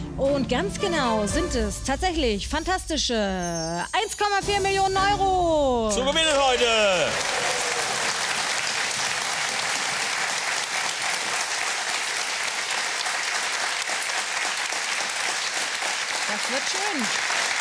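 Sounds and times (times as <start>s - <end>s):
speech: 0.2s - 7.5s
studio audience applause: 6.1s - 17.5s.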